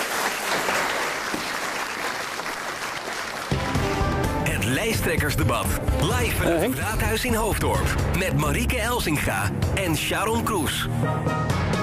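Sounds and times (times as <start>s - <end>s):
audience applause: 0.0s - 4.3s
speech: 4.9s - 11.6s.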